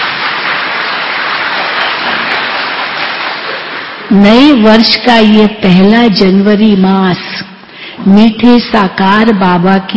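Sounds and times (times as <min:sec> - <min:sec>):
audience clapping: 0:00.0 - 0:04.1
speech: 0:04.1 - 0:09.9.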